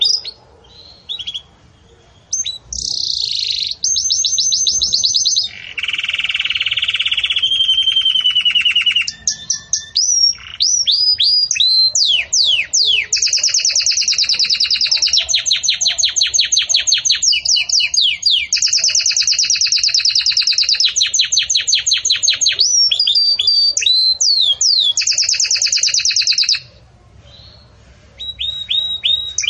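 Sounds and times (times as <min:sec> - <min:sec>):
canary song: 0:00.0 - 0:29.4.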